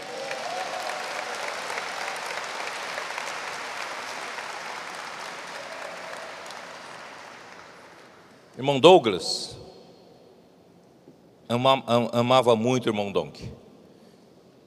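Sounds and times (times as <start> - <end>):
audience applause: 0.0 - 8.5
speech: 8.6 - 9.6, 11.5 - 13.6.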